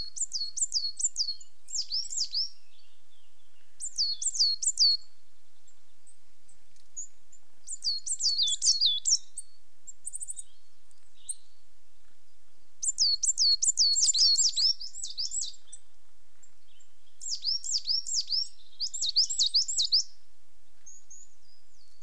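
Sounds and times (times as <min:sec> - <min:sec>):
coal tits giving high-pitched calls on a territorial boundary: 0:00.0 - 0:11.7, 0:12.3 - 0:20.2.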